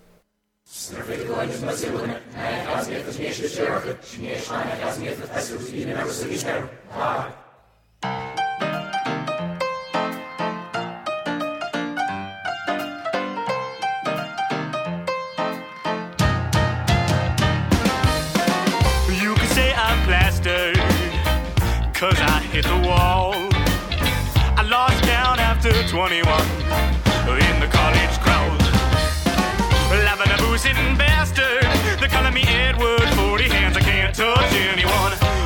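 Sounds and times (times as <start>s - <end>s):
speech: 0.9s - 7.4s, 22.1s - 23.4s, 25.9s - 26.6s
song intro with quick bright rhythmic notes: 8.0s - 35.4s
louder fuller band sound: 15.5s - 35.4s.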